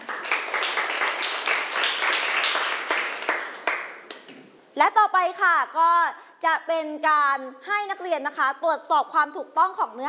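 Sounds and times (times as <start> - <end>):
classmates clapping: 0.0 - 4.3
speech: 4.8 - 10.0.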